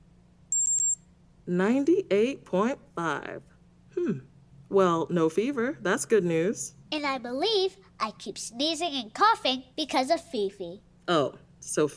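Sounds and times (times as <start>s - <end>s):
digital thermometer beeps: 0.5s - 1.0s
speech: 1.5s - 11.9s.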